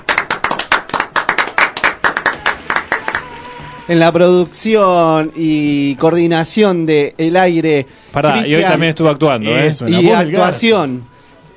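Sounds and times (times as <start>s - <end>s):
applause: 0.0s - 3.4s
speech: 3.9s - 11.1s.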